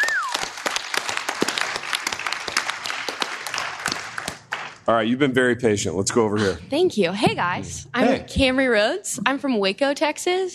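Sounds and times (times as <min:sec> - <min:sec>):
whistle: 0:00.0 - 0:00.5
audience applauding: 0:00.0 - 0:05.0
speech: 0:04.9 - 0:10.5.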